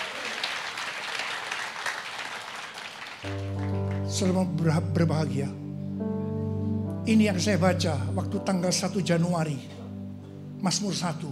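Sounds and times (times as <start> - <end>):
audience applause: 0.0 - 4.4
speech: 4.1 - 6.1, 7.1 - 9.8, 10.6 - 11.3.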